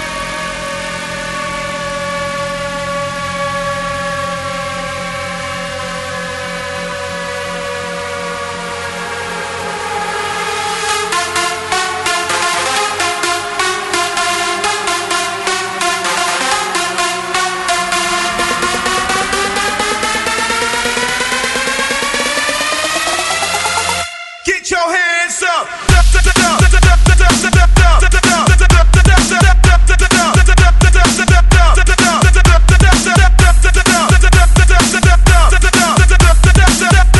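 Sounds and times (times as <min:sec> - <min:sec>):
breakbeat mix: 0:10.5 - 0:37.1.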